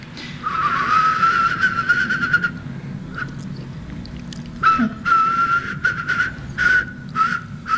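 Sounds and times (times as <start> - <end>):
person whistling imitation of a whimbrel call: 0.4 - 3.4, 4.6 - 7.7.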